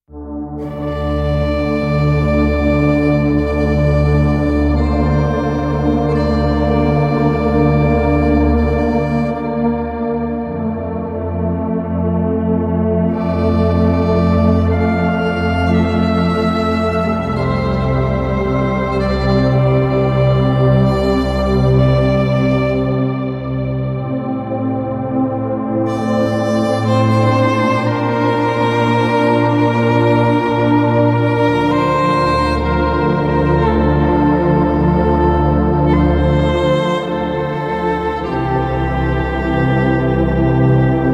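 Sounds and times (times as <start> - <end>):
violin: 0.6 - 25.1, 25.8 - 41.1.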